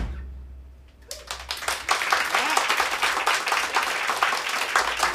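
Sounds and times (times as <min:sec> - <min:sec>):
audience applause: 0:01.1 - 0:05.1.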